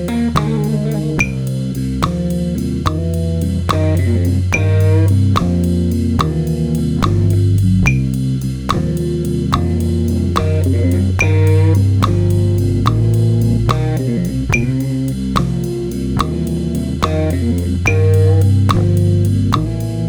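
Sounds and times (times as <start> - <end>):
blues grooves: 0.0 - 20.0.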